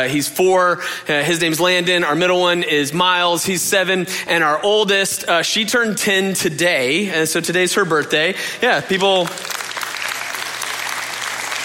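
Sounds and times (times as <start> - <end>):
speech: 0.0 - 9.5
audience applause for a daughter's tenth birthday: 9.0 - 11.6.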